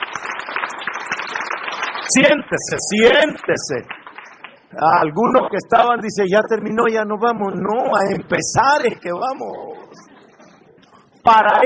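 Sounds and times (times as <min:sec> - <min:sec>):
audience applause: 0:00.0 - 0:04.7
speech: 0:02.1 - 0:04.0, 0:04.7 - 0:10.1, 0:11.2 - 0:11.6.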